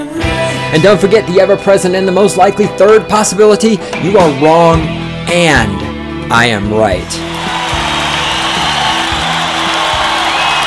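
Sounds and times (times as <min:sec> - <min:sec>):
speech: 0:00.2 - 0:07.3
crowd cheering wildly: 0:07.1 - 0:10.6.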